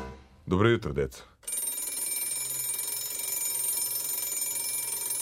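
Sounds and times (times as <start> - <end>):
speech: 0.6 - 1.3
school bell ringing: 1.5 - 5.2.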